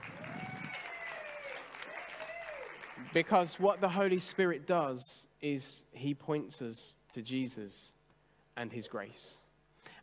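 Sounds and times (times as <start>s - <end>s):
audience clapping: 0.0s - 4.6s
speech: 3.0s - 8.0s, 8.6s - 9.4s.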